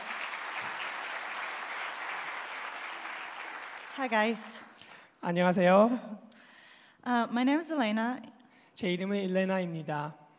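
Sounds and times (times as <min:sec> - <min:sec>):
audience applause welcoming a speaker: 0:00.0 - 0:04.6
speech: 0:04.0 - 0:06.3, 0:07.0 - 0:10.2.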